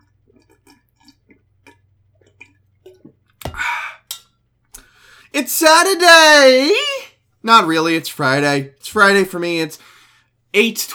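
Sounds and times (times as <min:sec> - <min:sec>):
drinking water ASMR gulps: 0:00.0 - 0:04.2
speech: 0:05.4 - 0:09.9, 0:10.6 - 0:10.9.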